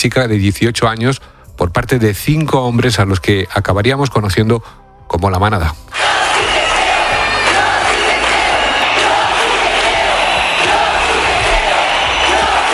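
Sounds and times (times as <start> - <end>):
speech: 0.0 - 6.0
street protest crowd chanting: 5.9 - 12.7.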